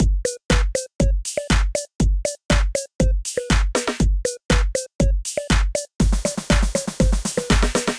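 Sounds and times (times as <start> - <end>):
electrified drum kit: 0.0 - 7.9.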